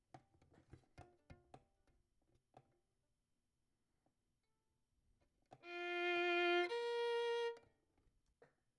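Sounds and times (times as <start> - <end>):
violin: 5.5 - 7.8.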